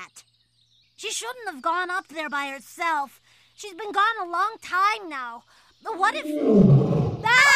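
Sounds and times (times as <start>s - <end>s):
speech: 0.0s - 0.3s, 1.0s - 7.0s
wild hungry animal roaring: 6.2s - 7.4s.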